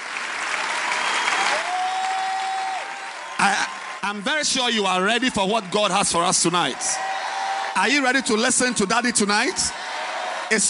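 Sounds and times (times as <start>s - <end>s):
audience clapping: 0.0s - 10.6s
speech: 3.4s - 7.1s, 7.8s - 9.8s, 10.5s - 10.6s.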